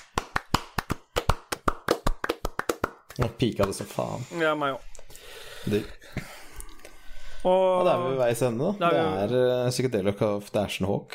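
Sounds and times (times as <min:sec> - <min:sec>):
brief applause from a few people: 0:00.0 - 0:04.0
speech: 0:03.2 - 0:04.9, 0:05.6 - 0:06.4, 0:07.4 - 0:11.1.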